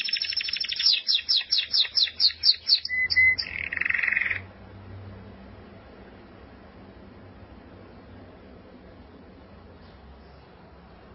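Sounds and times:
canary-type buzzy trill: 0.0s - 4.5s.

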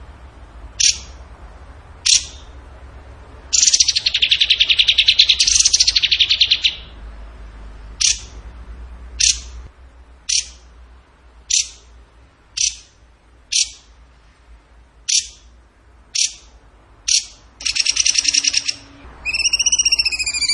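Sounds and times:
bird singing: 0.8s - 1.2s, 2.0s - 2.6s, 3.5s - 7.0s, 8.0s - 8.4s, 10.3s - 10.6s, 11.5s - 11.9s, 12.6s - 13.9s, 15.1s - 15.5s, 16.2s - 20.5s.

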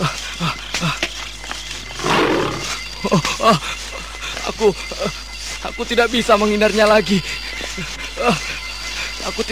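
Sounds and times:
tiger roaring: 1.9s - 2.8s
speech: 3.0s - 3.8s, 4.6s - 8.6s, 9.3s - 9.5s.

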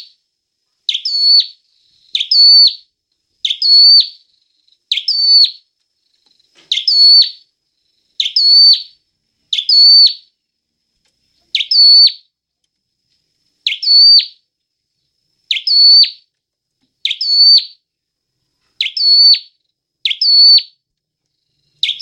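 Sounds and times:
Hill prinia singing whistled phrases: 0.9s - 1.6s, 2.2s - 2.8s, 3.4s - 4.2s, 4.9s - 5.6s, 6.7s - 7.4s, 8.2s - 10.3s, 11.5s - 12.2s, 13.7s - 14.4s, 15.5s - 16.2s, 17.0s - 17.8s, 18.8s - 20.8s, 21.8s - 22.0s.

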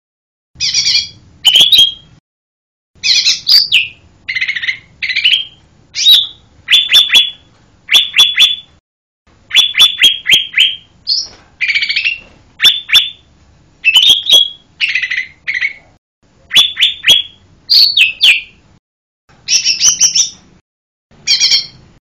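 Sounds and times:
bird singing lively high chirped phrases: 0.6s - 2.2s, 3.0s - 8.8s, 9.5s - 15.9s, 16.5s - 18.6s, 19.4s - 20.5s, 21.2s - 21.8s.

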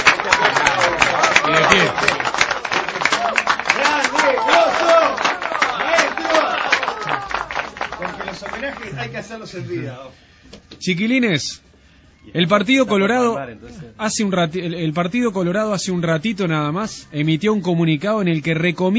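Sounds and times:
group applauding: 0.0s - 9.6s
speech: 9.0s - 11.6s, 12.3s - 18.9s.

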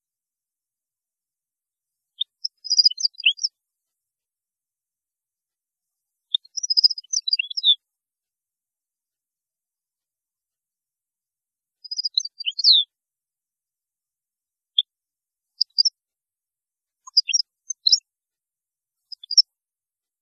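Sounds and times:
European goldfinch song: 2.2s - 3.5s, 6.4s - 7.8s, 11.9s - 12.8s, 17.1s - 18.0s, 19.2s - 19.4s.

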